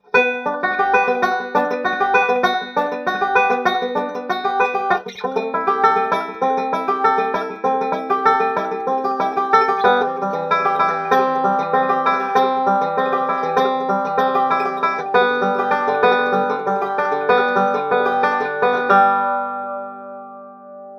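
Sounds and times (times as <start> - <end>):
banjo played through guitar effects: 0.0 - 20.5.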